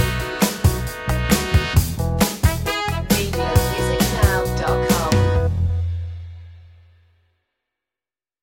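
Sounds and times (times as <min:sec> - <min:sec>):
easy groove music: 0:00.0 - 0:06.3.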